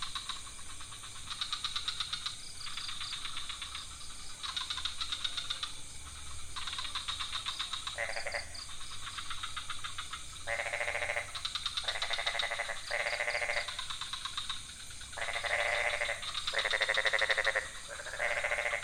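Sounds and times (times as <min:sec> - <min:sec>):
frogs calling in a chorus: 0:00.0 - 0:18.8.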